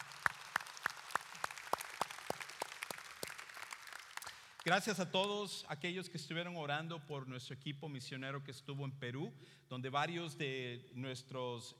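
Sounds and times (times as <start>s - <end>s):
applause: 0.0s - 5.5s
speech: 4.6s - 11.7s.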